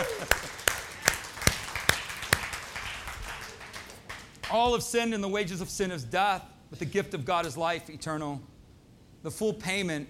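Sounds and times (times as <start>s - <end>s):
audience clapping: 0.0s - 4.7s
speech: 4.6s - 8.5s, 9.2s - 10.0s.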